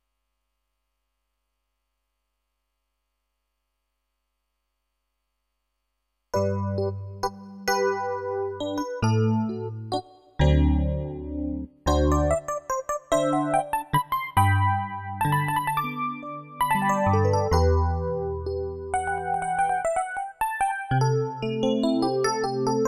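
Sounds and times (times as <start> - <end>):
electric piano: 6.4 - 22.8.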